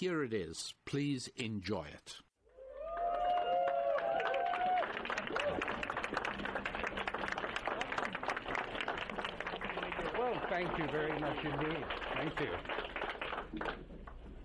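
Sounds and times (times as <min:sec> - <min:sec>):
speech: 0:00.0 - 0:02.3, 0:10.5 - 0:12.8, 0:13.5 - 0:13.9
people cheering and whooping: 0:02.5 - 0:07.2
audience applause: 0:02.6 - 0:14.4.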